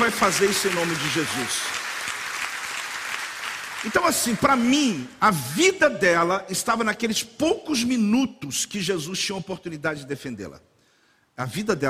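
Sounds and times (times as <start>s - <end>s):
applause: 0.0s - 5.2s
speech: 0.1s - 1.8s, 3.8s - 10.7s, 11.4s - 11.8s.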